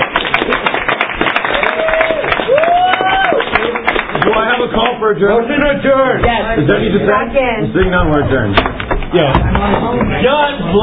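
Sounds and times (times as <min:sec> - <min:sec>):
audience applause: 0:00.0 - 0:05.1
speech: 0:05.0 - 0:10.8.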